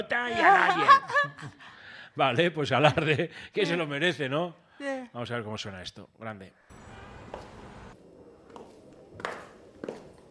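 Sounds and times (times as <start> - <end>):
speech: 0.0 - 1.6, 2.2 - 7.5
high heels of a downstairs neighbour striking the floor: 7.2 - 7.7, 8.4 - 10.2.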